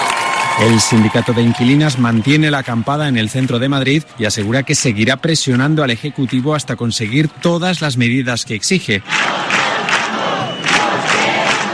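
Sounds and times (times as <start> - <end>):
speech: 0.6 - 9.6
large crowd chanting in unison at a protest: 9.0 - 11.7.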